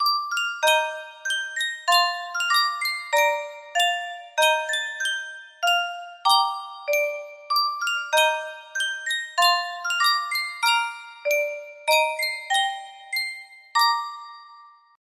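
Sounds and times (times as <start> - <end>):
Yunsheng custom tune music box melody: 0.0 - 15.0.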